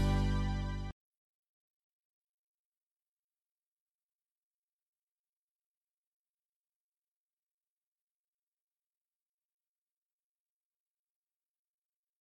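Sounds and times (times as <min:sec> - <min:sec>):
Christmas song: 0:00.0 - 0:00.9.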